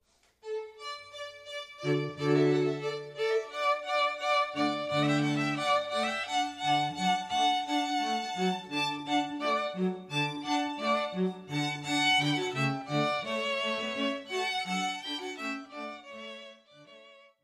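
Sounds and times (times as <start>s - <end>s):
string quartet: 0.4s - 17.4s.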